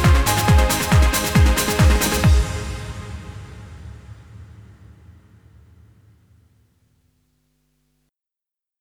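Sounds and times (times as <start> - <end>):
instrumental music: 0.0 - 3.6.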